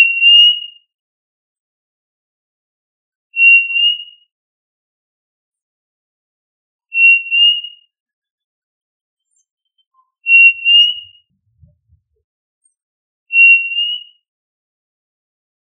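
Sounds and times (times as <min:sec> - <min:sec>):
quail whistle: 0:03.4 - 0:04.3, 0:06.9 - 0:07.9, 0:10.0 - 0:11.7, 0:13.3 - 0:14.2.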